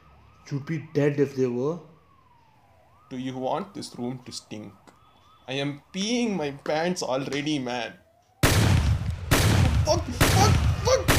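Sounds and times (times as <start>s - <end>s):
speech: 0.5s - 1.9s, 3.1s - 4.8s, 5.5s - 8.0s, 9.8s - 11.0s
gunfire from a shootout playing on a TV: 8.4s - 11.1s.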